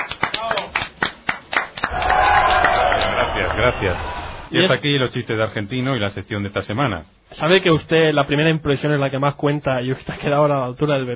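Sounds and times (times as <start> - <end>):
applause after a comedy segment: 0.0 - 4.0
speech: 3.6 - 11.1.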